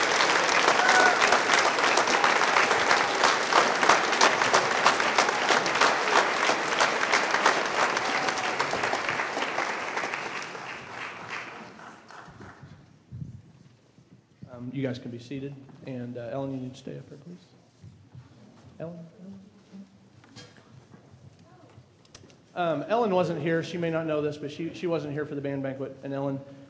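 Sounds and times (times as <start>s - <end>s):
audience applause: 0.0s - 12.6s
speech: 14.9s - 17.6s, 18.8s - 19.5s, 22.6s - 26.6s.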